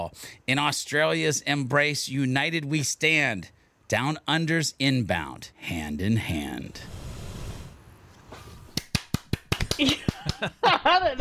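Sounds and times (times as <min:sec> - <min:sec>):
speech: 0:00.1 - 0:07.0, 0:09.8 - 0:11.1
single person clapping: 0:08.7 - 0:10.6
person laughing: 0:09.6 - 0:11.1.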